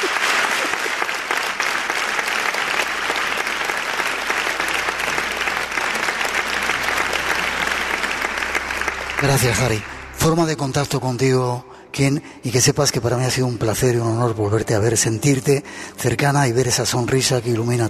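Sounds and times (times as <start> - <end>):
audience applause: 0.0 - 10.5
speech: 9.2 - 17.8.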